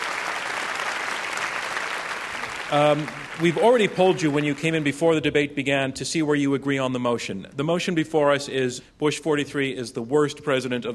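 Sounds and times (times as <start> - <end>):
audience applause: 0.0 - 5.0
speech: 2.7 - 10.9.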